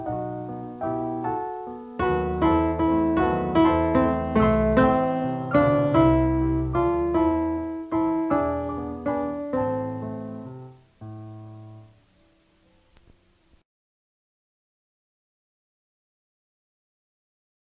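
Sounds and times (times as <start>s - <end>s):
tenor: 0.0s - 13.6s.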